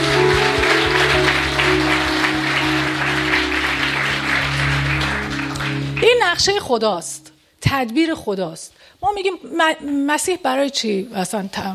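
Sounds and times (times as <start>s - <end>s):
audience of about a hundred people clapping in praise of God: 0.0s - 6.7s
speech: 6.4s - 11.7s.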